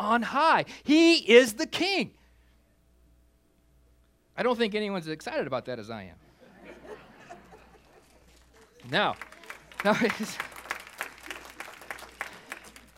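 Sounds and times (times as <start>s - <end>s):
speech: 0.1s - 2.2s, 4.4s - 6.2s, 8.8s - 10.5s
laughter: 6.3s - 12.9s
audience applause: 7.7s - 12.9s.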